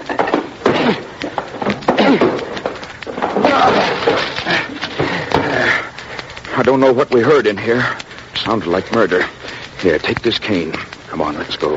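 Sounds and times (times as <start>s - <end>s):
locked door being broken down: 0.1s - 5.5s
speech: 0.9s - 1.1s, 6.6s - 11.7s.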